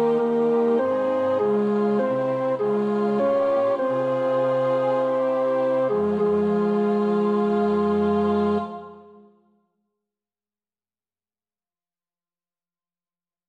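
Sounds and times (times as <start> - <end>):
tenor practising a choir part: 0.0 - 9.3.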